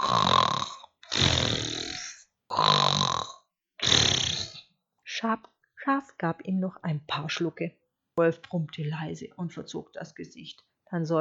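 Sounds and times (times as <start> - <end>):
snoring: 0.0 - 4.7
speech: 5.9 - 11.1.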